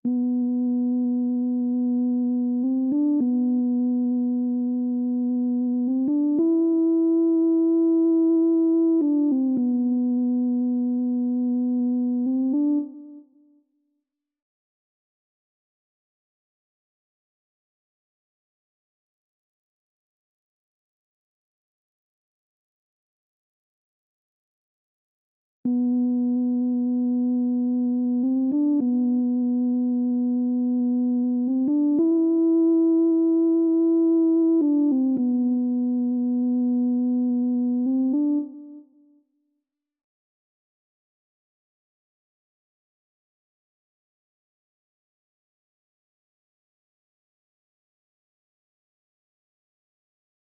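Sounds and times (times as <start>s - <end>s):
lead melody in A minor: 0.1s - 13.2s, 25.7s - 38.8s.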